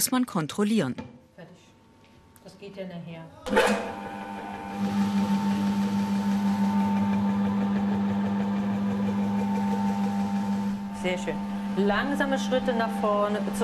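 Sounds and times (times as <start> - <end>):
speech: 0.0 - 1.1, 2.5 - 4.2, 11.0 - 13.6
rotary floor cleaning machine running: 3.5 - 13.6.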